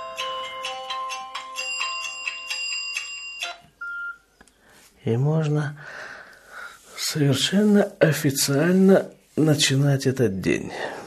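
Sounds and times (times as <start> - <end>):
alarm clock ringing: 0.0 - 3.6
speech: 5.0 - 5.9, 7.1 - 11.0.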